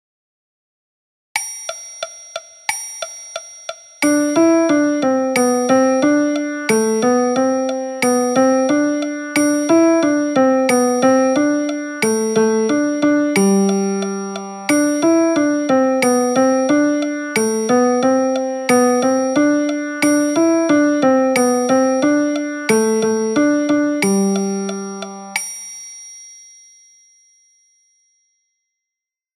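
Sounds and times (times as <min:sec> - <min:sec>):
piano music: 0:04.0 - 0:25.4.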